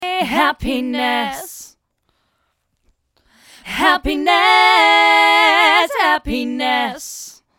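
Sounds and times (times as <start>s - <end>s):
choir voices: 0.0s - 1.7s, 3.6s - 7.4s.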